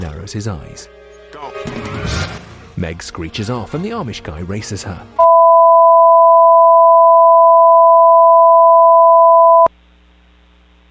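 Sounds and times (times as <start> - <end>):
speech: 0.0 - 5.3
emergency broadcast alert activation tone: 5.2 - 9.7
faint hum: 5.2 - 10.8.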